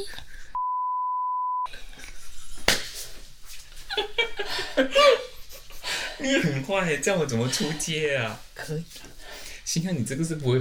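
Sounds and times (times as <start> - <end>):
speech: 0.0 - 0.3, 4.8 - 5.3, 6.2 - 10.5
censor beep: 0.6 - 1.7.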